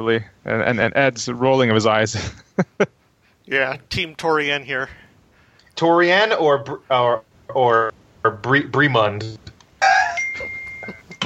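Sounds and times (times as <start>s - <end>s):
speech: 0.0s - 5.0s, 5.8s - 9.5s
kitchen appliance high beep: 10.0s - 11.2s
kitchen appliance electronic finished chime: 10.1s - 11.2s.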